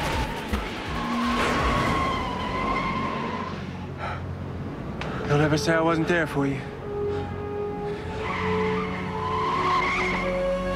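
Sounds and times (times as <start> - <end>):
high tonal whine or tire squeal: 0.0 - 4.2, 7.2 - 10.7
taxi engine roaring while reversing and accelerating hard: 0.0 - 10.7
speech: 5.3 - 6.7.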